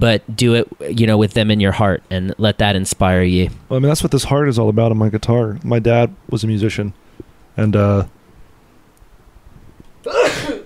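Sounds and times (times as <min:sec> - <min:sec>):
speech: 0:00.0 - 0:07.0, 0:07.6 - 0:08.2
person sneezing: 0:10.1 - 0:10.6.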